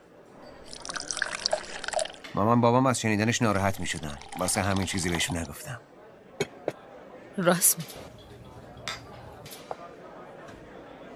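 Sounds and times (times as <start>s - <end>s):
drink being poured into a glass: 0.5s - 2.4s, 3.2s - 5.6s
speech: 2.4s - 5.9s, 7.4s - 8.2s.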